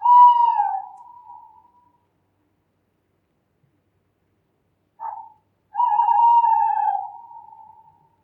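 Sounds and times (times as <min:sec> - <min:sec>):
owl: 0:00.0 - 0:01.9, 0:05.0 - 0:08.2.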